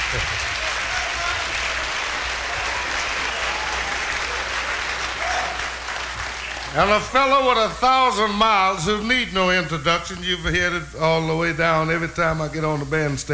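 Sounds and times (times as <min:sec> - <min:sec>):
audience applause: 0:00.0 - 0:09.0
speech: 0:06.8 - 0:13.3.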